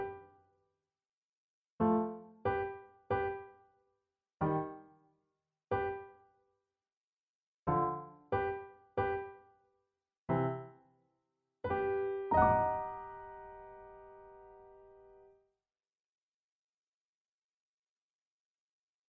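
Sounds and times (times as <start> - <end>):
piano: 0.0 - 0.4, 1.8 - 3.6, 4.4 - 5.0, 5.7 - 6.2, 7.7 - 9.6, 10.3 - 10.9, 11.6 - 15.4.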